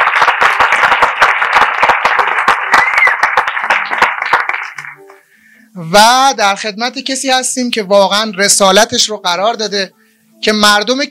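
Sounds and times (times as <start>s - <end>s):
audience applause: 0.0s - 5.0s
speech: 5.8s - 11.0s.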